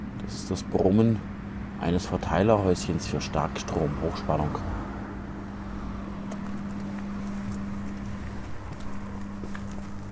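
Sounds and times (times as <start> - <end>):
speech: 0.2 - 4.8
footsteps walking: 6.2 - 10.1.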